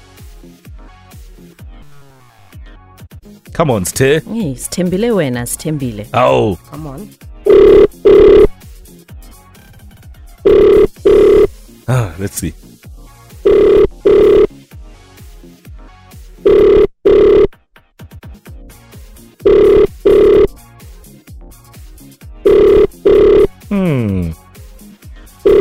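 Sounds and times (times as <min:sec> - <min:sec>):
speech: 0:03.6 - 0:08.4, 0:11.9 - 0:12.6
telephone ringing unanswered: 0:07.5 - 0:08.5, 0:10.5 - 0:11.5, 0:13.4 - 0:14.5, 0:16.5 - 0:17.5, 0:19.4 - 0:20.5, 0:22.5 - 0:23.5.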